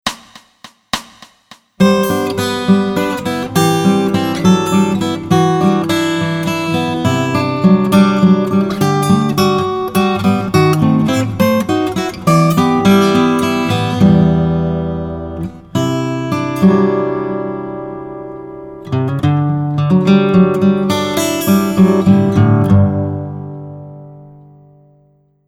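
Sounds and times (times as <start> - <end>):
acoustic music: 1.8 - 25.2.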